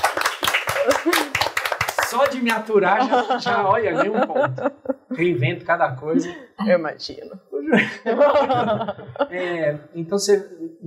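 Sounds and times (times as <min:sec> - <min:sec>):
audience clapping: 0:00.0 - 0:03.9
laughter: 0:00.7 - 0:01.6, 0:02.5 - 0:06.4, 0:07.6 - 0:09.6
speech: 0:00.8 - 0:01.3, 0:02.1 - 0:10.8.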